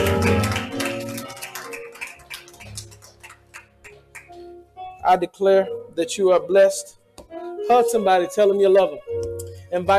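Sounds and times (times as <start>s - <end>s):
audience clapping hands in praise: 0.0s - 4.4s
speech: 5.1s - 9.9s.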